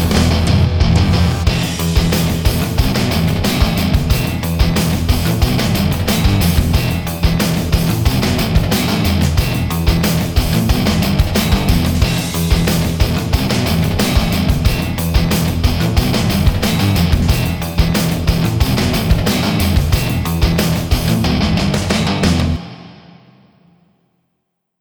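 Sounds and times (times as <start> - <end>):
simple background music: 0.0 - 22.6.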